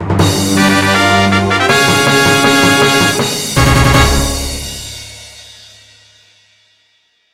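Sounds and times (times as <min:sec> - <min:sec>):
fanfare: 0:00.0 - 0:05.1.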